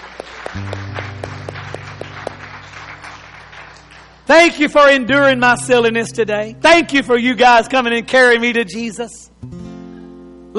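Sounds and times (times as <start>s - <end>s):
audience hand clapping: 0.0s - 4.3s
speech: 0.5s - 1.1s, 4.3s - 9.6s.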